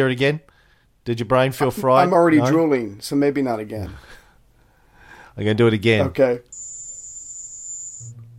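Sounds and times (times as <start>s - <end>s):
speech: 0.0s - 4.2s, 5.4s - 6.5s
crickets chirping: 6.6s - 8.1s.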